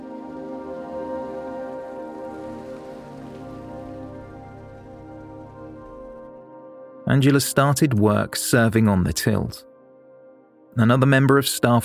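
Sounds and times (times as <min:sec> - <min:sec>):
heavy rain pouring: 0:00.0 - 0:06.3
speech: 0:07.1 - 0:09.7, 0:10.8 - 0:11.8.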